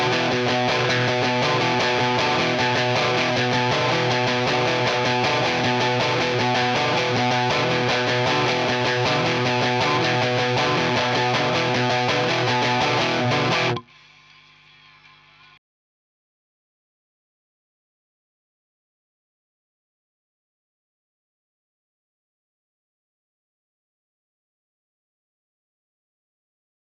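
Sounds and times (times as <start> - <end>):
seven-string guitar: 0.0 - 13.9.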